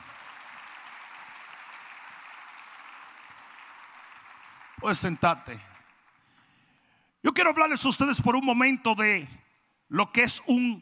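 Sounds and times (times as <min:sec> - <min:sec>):
applause: 0:00.0 - 0:06.8
speech: 0:04.8 - 0:05.7, 0:07.3 - 0:10.7.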